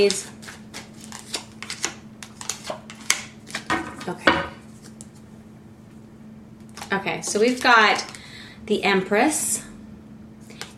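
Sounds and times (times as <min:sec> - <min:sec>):
speech: 0:00.0 - 0:00.4, 0:04.0 - 0:04.4, 0:06.9 - 0:09.6
tarot cards being shuffled and drawn: 0:00.0 - 0:03.7, 0:06.7 - 0:08.2.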